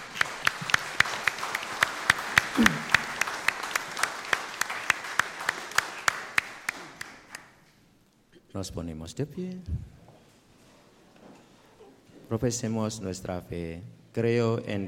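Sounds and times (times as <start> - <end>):
audience applause: 0.0 - 7.6
speech: 2.6 - 2.8, 8.6 - 9.9, 12.3 - 14.8.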